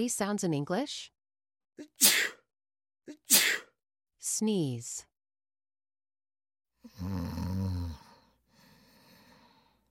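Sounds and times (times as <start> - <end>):
speech: 0.0 - 1.2, 1.8 - 2.3, 4.2 - 5.1, 6.9 - 7.8
snoring: 6.8 - 9.3.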